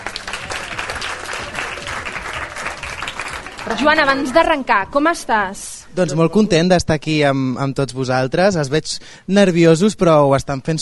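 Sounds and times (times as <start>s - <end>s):
audience applause: 0.0s - 4.4s
speech: 3.6s - 10.7s.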